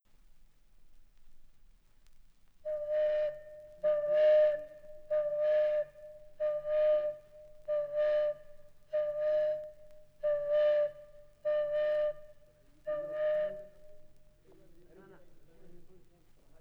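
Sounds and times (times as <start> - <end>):
flute: 2.6 - 14.7.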